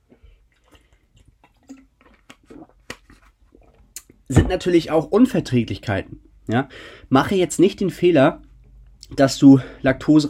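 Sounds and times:
sipping and swallowing a drink: 0.0 - 4.3
speech: 4.3 - 8.4, 9.1 - 10.2.

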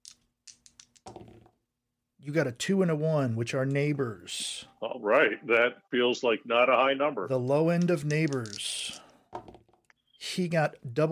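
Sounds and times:
two dice rolling and rattling: 0.0 - 1.6, 7.5 - 9.8
speech: 2.2 - 8.7, 10.4 - 11.1.

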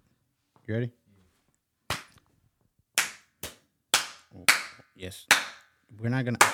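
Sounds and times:
speech: 0.7 - 1.0, 5.0 - 6.5
single hand clap for edit sync: 1.9 - 2.2, 3.0 - 5.6, 6.4 - 6.5.

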